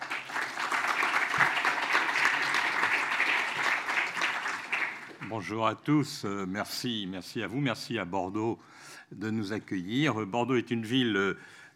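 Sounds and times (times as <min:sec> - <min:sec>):
audience applause: 0:00.0 - 0:05.3
speech: 0:05.3 - 0:11.7.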